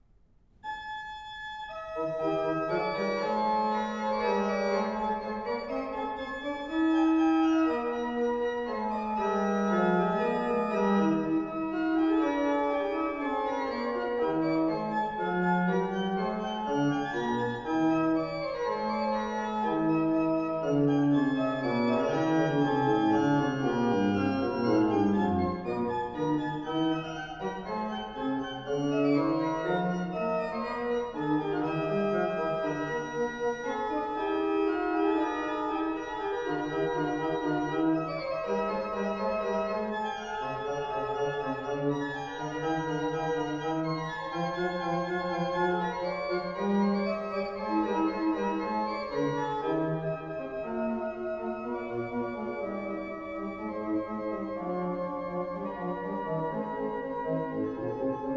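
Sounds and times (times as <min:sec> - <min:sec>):
organ concerto fugue allegro in A major: 0:00.6 - 0:58.3.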